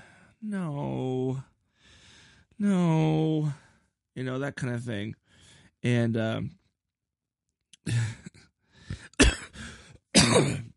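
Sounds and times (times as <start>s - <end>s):
speech: 0.4s - 1.5s, 2.6s - 3.6s, 4.2s - 5.2s, 5.8s - 6.6s, 7.9s - 8.2s
person clearing throat, phlegmy: 9.2s - 9.6s, 10.2s - 10.7s.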